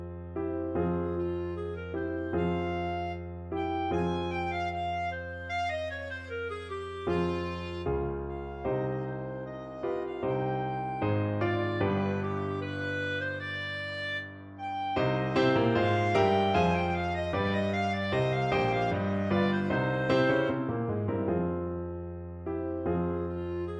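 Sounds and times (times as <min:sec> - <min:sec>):
clarinet duet: 0:00.5 - 0:21.3, 0:22.6 - 0:23.7.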